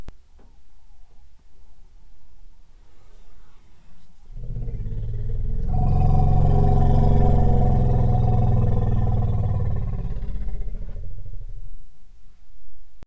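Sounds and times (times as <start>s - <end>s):
elephant calls: 4.4s - 11.9s.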